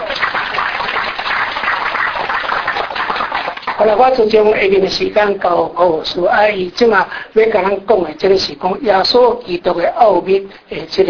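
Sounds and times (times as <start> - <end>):
church meeting audience applauding to welcome a guest: 0.0 - 4.4
speech: 3.8 - 11.0.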